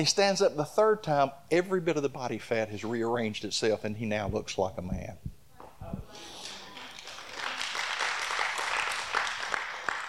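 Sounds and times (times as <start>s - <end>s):
speech: 0.0s - 5.3s
audience clapping: 6.3s - 10.0s.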